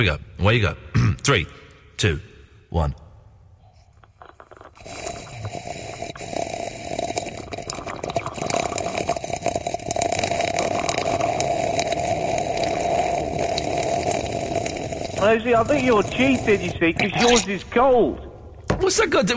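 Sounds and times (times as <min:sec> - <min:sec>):
speech: 0:00.0 - 0:03.0, 0:15.2 - 0:18.2, 0:18.8 - 0:19.3
slurping tea: 0:03.8 - 0:17.4.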